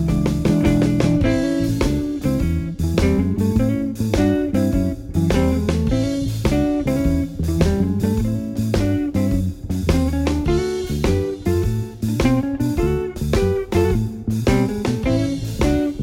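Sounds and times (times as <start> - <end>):
blues drumming: 0.0 - 16.0.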